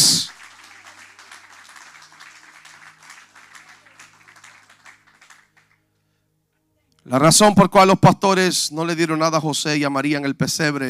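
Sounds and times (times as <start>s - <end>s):
applause: 0.0s - 5.8s
speech: 7.1s - 10.8s.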